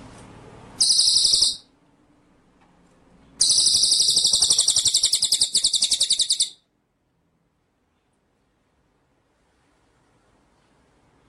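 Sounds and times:
white-rumped shama rattling trill: 0:00.8 - 0:01.7, 0:03.4 - 0:06.6.

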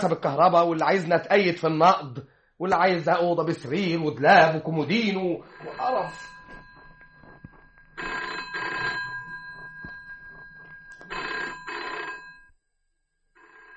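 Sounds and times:
speech: 0:00.0 - 0:06.4
telephone electric bell ringing: 0:04.4 - 0:12.6, 0:13.3 - 0:13.7.

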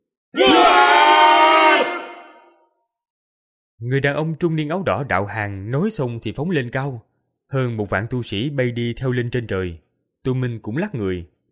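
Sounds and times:
crowd of thousands roaring: 0:00.4 - 0:02.5
speech: 0:03.9 - 0:11.5.

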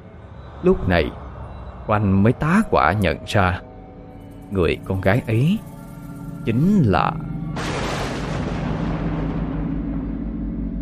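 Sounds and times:
speech: 0:00.6 - 0:01.2, 0:01.9 - 0:03.7, 0:04.5 - 0:05.7, 0:06.4 - 0:07.3
thunderclap: 0:07.6 - 0:10.7.

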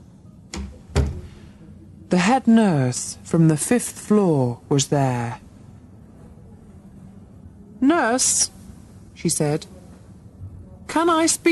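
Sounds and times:
door opening and closing: 0:00.5 - 0:01.4
speech: 0:02.1 - 0:05.4, 0:07.8 - 0:08.6, 0:09.2 - 0:09.7, 0:10.9 - 0:11.4.

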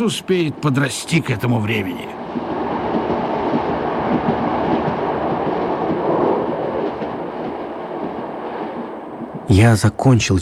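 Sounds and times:
speech: 0:00.0 - 0:02.2, 0:09.5 - 0:10.4
train to Shutikhinsk rolling along the rails: 0:00.0 - 0:10.4
train wheels clickety-clack: 0:02.2 - 0:09.5.

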